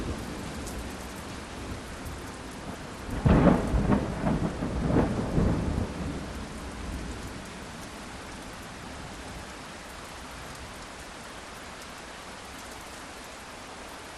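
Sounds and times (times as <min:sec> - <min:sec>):
medium rain in a thunderstorm: 0:00.0 - 0:14.1
various direct lightning strikes: 0:03.1 - 0:06.2.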